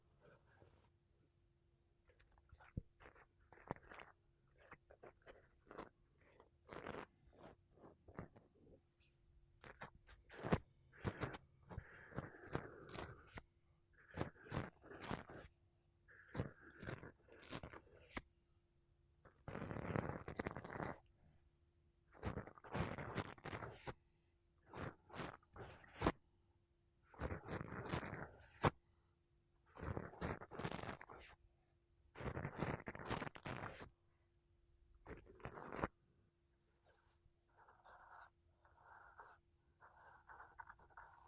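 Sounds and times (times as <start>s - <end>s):
makeup brushes and sponge rubbing against a microphone: 2.4s - 8.5s, 9.6s - 18.2s, 19.5s - 21.0s, 22.2s - 24.0s, 24.6s - 26.2s, 27.1s - 28.8s, 29.7s - 31.4s, 32.2s - 33.9s, 35.0s - 36.0s, 36.6s - 41.2s.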